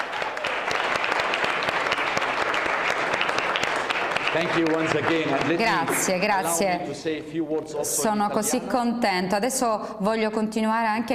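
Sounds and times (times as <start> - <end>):
audience applause: 0.0 - 6.6
speech: 4.4 - 11.1.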